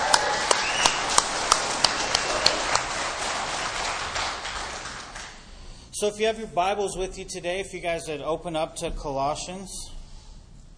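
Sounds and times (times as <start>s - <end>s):
round of applause for the worship team: 0.0s - 5.5s
speech: 6.0s - 9.9s.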